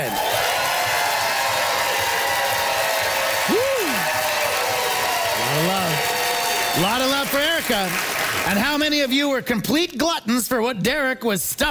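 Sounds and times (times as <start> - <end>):
audience applause: 0.0 - 9.0
speech: 7.6 - 11.6.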